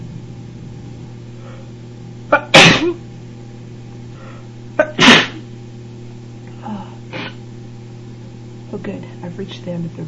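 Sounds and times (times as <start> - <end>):
person sneezing: 2.3 - 3.0, 4.8 - 5.4, 7.1 - 7.4
speech: 8.8 - 10.0.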